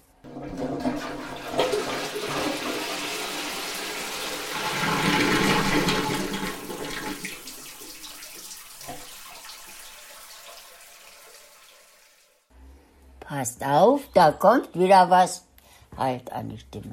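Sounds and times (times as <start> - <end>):
toilet flushing: 0.2 - 12.5
speech: 13.4 - 16.9.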